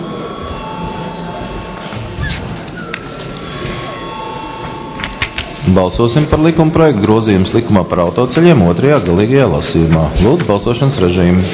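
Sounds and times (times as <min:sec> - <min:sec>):
parliament chamber bell ringing: 0:00.0 - 0:07.0
speech: 0:05.7 - 0:11.5.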